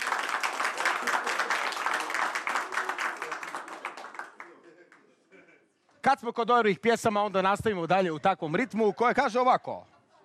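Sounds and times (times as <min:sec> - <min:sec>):
audience applause at an evening concert of songs: 0:00.0 - 0:04.6
speech: 0:06.1 - 0:09.9.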